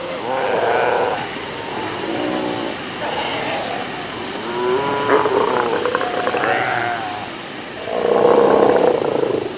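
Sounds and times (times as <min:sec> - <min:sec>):
South American sea lions calling: 0:00.0 - 0:09.5.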